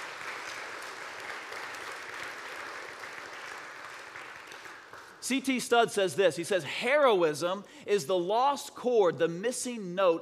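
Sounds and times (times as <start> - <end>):
audience applause: 0.0 - 5.2
speech: 5.2 - 10.2.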